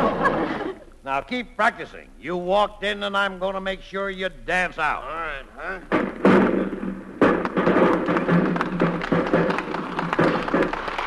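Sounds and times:
laughter: 0.0 - 1.0
speech: 1.1 - 6.4
round of applause from a group of people: 7.4 - 11.0.

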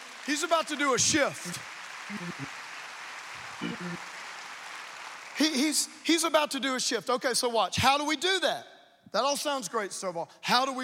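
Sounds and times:
audience clapping: 0.0 - 6.4
speech: 0.2 - 2.6, 3.6 - 4.1, 5.5 - 10.8.

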